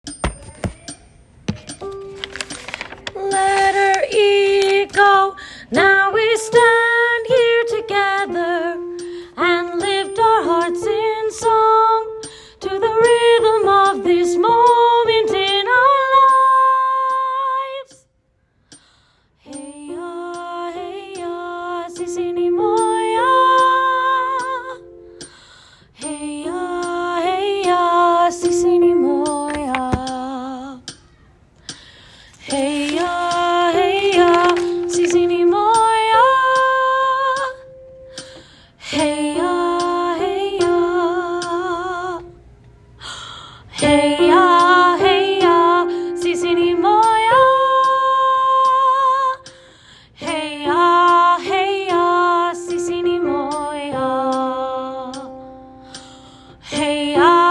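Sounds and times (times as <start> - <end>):
soprano singing: 1.5 - 18.0, 19.5 - 25.4, 26.0 - 31.0, 32.3 - 42.4, 43.7 - 49.6, 50.2 - 57.4.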